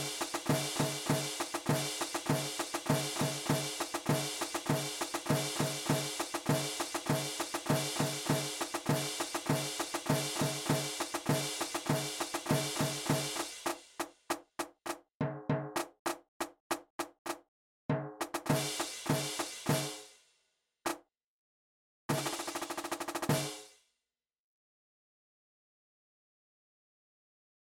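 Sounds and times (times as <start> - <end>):
rhythm: 0.0 - 20.1, 22.1 - 23.7.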